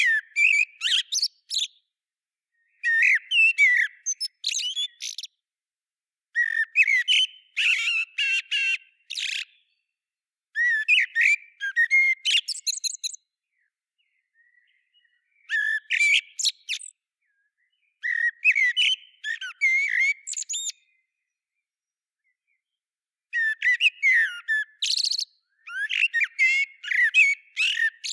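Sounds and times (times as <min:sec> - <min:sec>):
common blackbird singing: 0:00.0 - 0:01.8, 0:02.6 - 0:05.4, 0:06.4 - 0:09.9, 0:10.6 - 0:21.3, 0:22.2 - 0:28.1.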